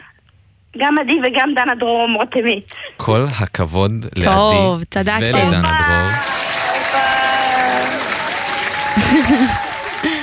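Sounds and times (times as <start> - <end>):
speech: 0.7 - 6.3, 9.0 - 9.6
laughter: 4.2 - 6.3, 8.7 - 10.2
audience applause: 5.3 - 10.2.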